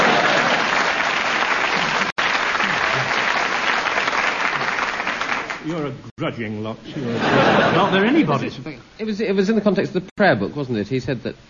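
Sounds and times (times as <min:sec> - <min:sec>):
laughter: 0:00.0 - 0:01.0, 0:06.9 - 0:08.5
crowd applauding: 0:00.0 - 0:05.7
speech: 0:05.7 - 0:11.4.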